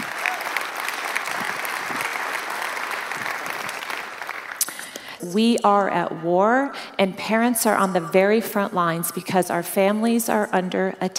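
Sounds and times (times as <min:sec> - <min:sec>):
audience applause: 0:00.0 - 0:04.7
speech: 0:05.2 - 0:11.1.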